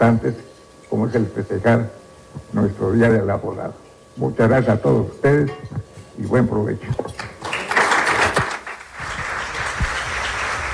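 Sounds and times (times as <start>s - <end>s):
speech: 0.0s - 7.3s
audience applause: 7.4s - 10.7s.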